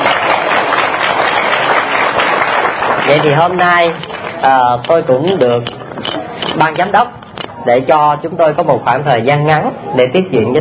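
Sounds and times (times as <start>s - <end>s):
audience applause at a gathering: 0.0s - 4.8s
speech: 3.1s - 5.8s, 6.6s - 10.5s.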